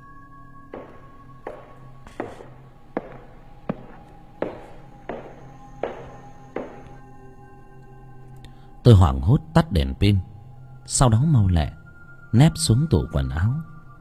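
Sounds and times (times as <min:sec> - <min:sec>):
heavy footsteps approaching: 0:00.7 - 0:07.0
speech: 0:08.9 - 0:10.3, 0:10.9 - 0:13.7.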